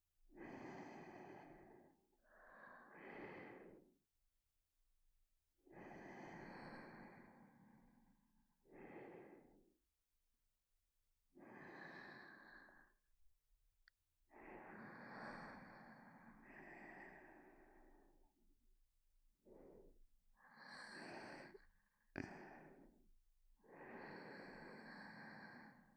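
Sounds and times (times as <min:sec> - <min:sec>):
sleeping breathing in both ears: 0:00.4 - 0:03.9, 0:05.7 - 0:07.8, 0:08.6 - 0:09.7, 0:11.4 - 0:13.0, 0:14.3 - 0:18.2, 0:19.4 - 0:21.6, 0:23.7 - 0:25.9.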